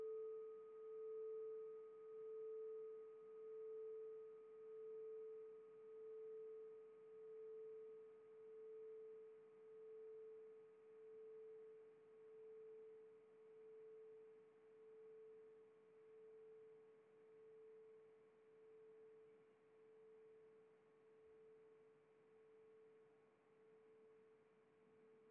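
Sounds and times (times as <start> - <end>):
singing bowl ringing on A 440 Hz: 0.0 - 16.7.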